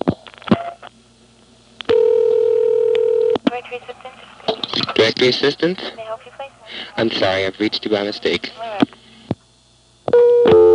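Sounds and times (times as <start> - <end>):
steady telephone tone on a phone trunk line: 1.9 - 3.4, 10.1 - 10.7
speech: 3.6 - 6.0, 6.8 - 8.6.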